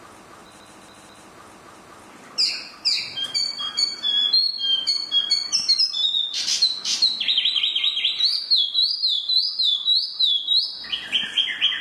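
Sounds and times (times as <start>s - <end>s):
Chinese hwamei whistling song: 2.4s - 11.7s.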